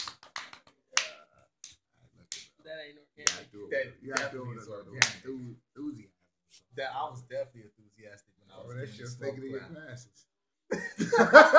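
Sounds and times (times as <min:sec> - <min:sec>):
people clapping: 0:00.0 - 0:02.5, 0:03.2 - 0:03.5, 0:04.1 - 0:04.4, 0:05.0 - 0:05.2
speech: 0:02.9 - 0:11.5
laughter: 0:10.7 - 0:11.5.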